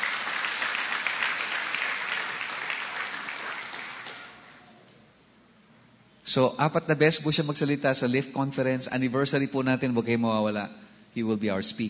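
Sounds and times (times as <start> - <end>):
audience applause for the Lord at a church anniversary conference: 0.0 - 4.7
speech: 6.3 - 11.8.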